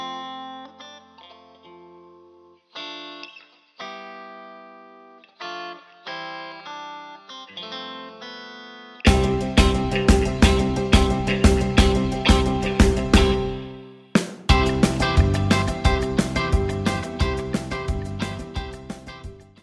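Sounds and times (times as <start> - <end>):
backing track without backing vocals: 9.0 - 19.6.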